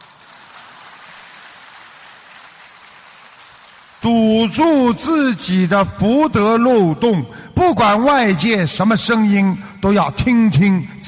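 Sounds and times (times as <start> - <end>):
crowd applause: 0.0 - 4.8
speech: 4.0 - 11.0.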